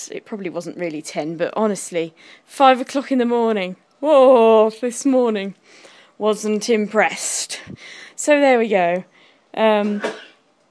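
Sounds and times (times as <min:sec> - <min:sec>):
speech: 0:00.0 - 0:10.3
person sneezing: 0:09.8 - 0:10.4.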